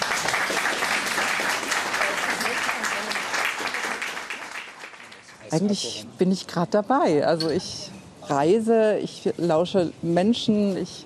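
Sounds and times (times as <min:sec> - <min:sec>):
audience applause: 0:00.0 - 0:05.5
speech: 0:05.5 - 0:11.0.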